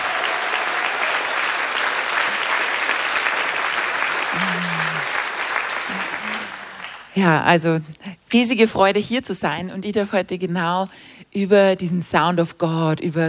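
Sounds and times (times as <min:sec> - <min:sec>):
crowd applauding the hosts: 0:00.0 - 0:07.2
speech: 0:07.2 - 0:13.2.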